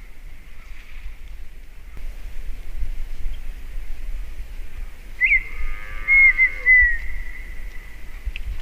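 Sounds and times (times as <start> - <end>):
partridge drawn-out whistle: 5.2 - 7.6.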